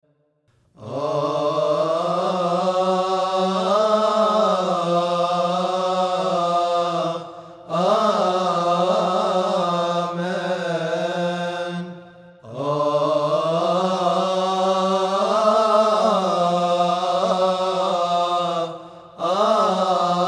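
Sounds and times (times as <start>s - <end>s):
amen singing: 0.8s - 20.2s.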